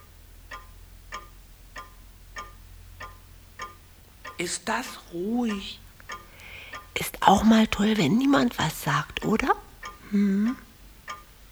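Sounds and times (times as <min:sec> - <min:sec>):
clock ticking: 0:00.0 - 0:11.5
speech: 0:04.4 - 0:05.8, 0:07.0 - 0:10.6.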